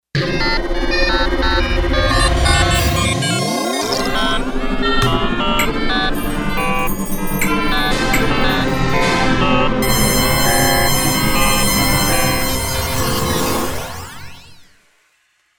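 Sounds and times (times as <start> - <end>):
menu sound effect: 1.0 - 14.4.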